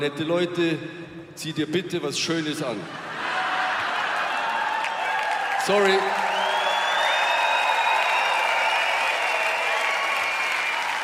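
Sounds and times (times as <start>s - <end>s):
speech: 0.0s - 3.3s, 5.6s - 6.3s
crowd applauding: 3.2s - 11.0s.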